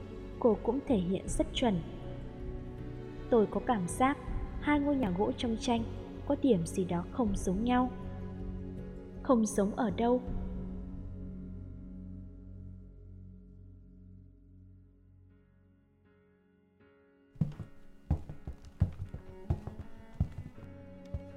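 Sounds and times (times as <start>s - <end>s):
speech: 0.4s - 2.0s, 3.3s - 8.0s, 9.3s - 10.4s
footsteps approaching: 17.4s - 21.3s.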